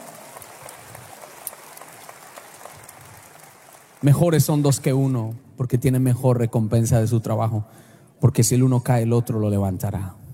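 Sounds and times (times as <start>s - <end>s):
applause: 0.0s - 5.2s
speech: 4.0s - 10.2s.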